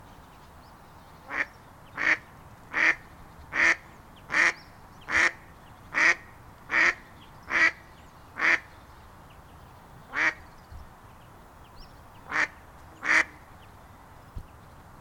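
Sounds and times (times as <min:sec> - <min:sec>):
mallard giving harsh nasal quacks: 0:01.3 - 0:05.4, 0:06.0 - 0:07.8, 0:12.3 - 0:13.4.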